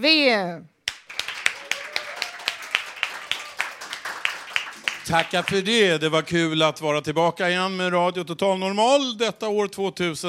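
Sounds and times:
speech: 0:00.0 - 0:00.7, 0:05.1 - 0:10.2
audience applause on stage: 0:00.9 - 0:05.8.

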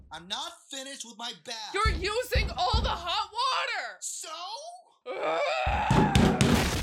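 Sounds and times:
speech: 0:00.9 - 0:03.2
door being broken in: 0:05.9 - 0:06.8.

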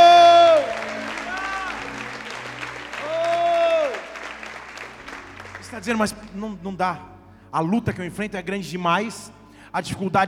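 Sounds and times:
audience applause: 0:00.0 - 0:06.3
speech: 0:05.8 - 0:10.2.

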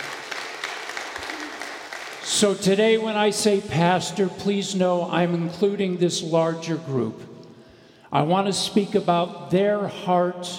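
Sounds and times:
audience applauding: 0:00.0 - 0:02.6
speech: 0:02.3 - 0:07.4, 0:08.1 - 0:10.5.

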